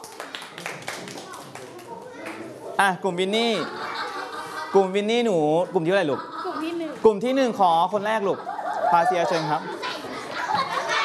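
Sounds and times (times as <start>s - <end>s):
children clapping in a classroom: 0.0s - 2.5s
speech: 2.8s - 3.8s, 4.7s - 9.8s
laughter: 3.3s - 11.0s.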